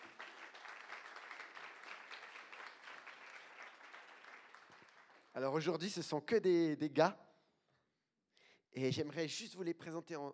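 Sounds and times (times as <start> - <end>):
audience applause: 0.0 - 5.3
speech: 5.4 - 7.2, 8.8 - 10.3.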